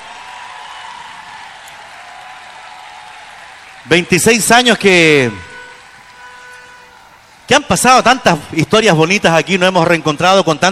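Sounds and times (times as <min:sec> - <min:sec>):
crowd applauding: 0:00.0 - 0:07.5
speech: 0:03.8 - 0:05.5, 0:07.5 - 0:10.7.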